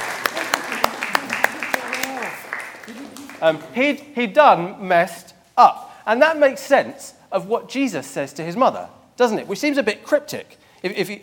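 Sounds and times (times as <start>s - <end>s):
audience clapping: 0.0s - 3.8s
speech: 3.4s - 11.2s.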